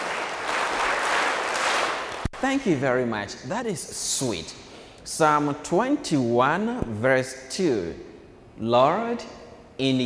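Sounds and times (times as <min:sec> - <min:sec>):
children clapping: 0:00.0 - 0:02.3
speech: 0:02.4 - 0:10.0.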